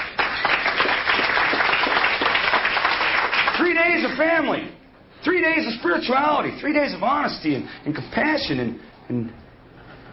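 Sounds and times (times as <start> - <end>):
audience applause: 0.0 - 4.2
speech: 3.8 - 9.4.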